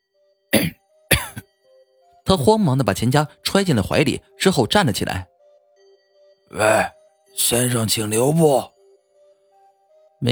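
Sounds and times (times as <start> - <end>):
person coughing harshly: 0.6 - 1.4
speech: 2.3 - 5.3, 6.5 - 8.7.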